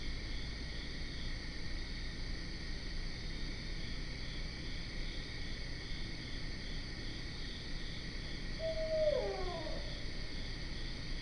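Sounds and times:
layered insect chorus: 0.0s - 11.2s
barred owl hooting: 8.6s - 10.1s.

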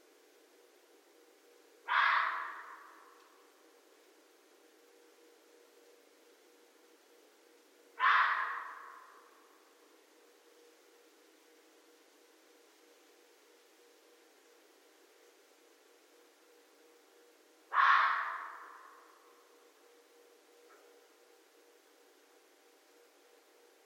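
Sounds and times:
red fox screaming: 1.9s - 3.1s, 8.0s - 9.3s, 17.7s - 19.2s.

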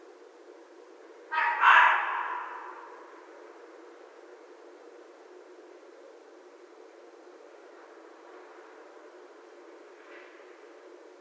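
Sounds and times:
red fox scream: 1.3s - 3.1s.

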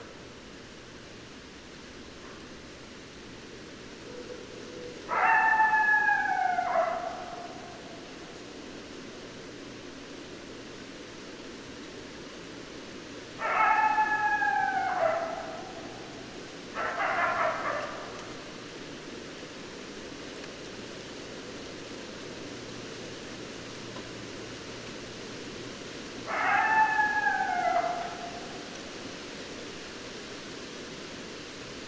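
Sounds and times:
steady hiss: 0.0s - 31.8s
coyote howling: 4.0s - 8.2s, 13.4s - 18.5s, 26.2s - 28.8s.

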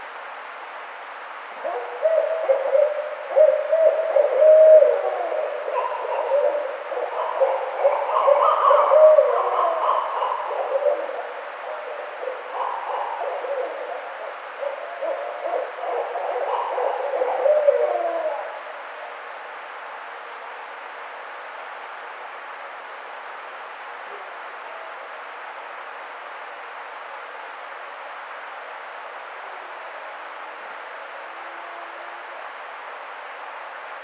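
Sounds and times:
Barred Owl calling: 1.6s - 18.6s.

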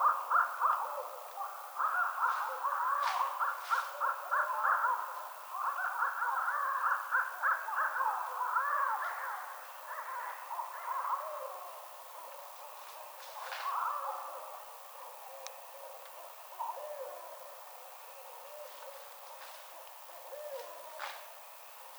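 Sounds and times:
Barred Owl calling: 0.0s - 11.8s, 13.4s - 14.6s, 18.2s - 21.2s.

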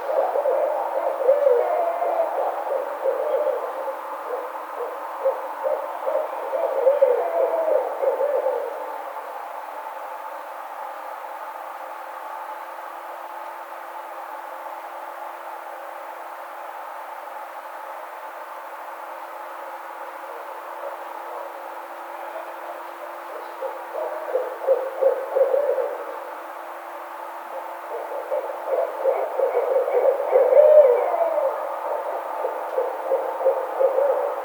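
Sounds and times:
Barred Owl calling: 0.0s - 9.0s, 20.3s - 26.4s, 27.4s - 34.4s.

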